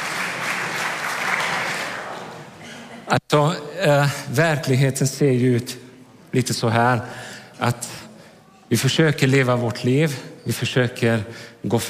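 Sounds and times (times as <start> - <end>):
audience applauding a participant: 0.0 - 2.6
speech: 3.1 - 8.0, 8.7 - 11.8.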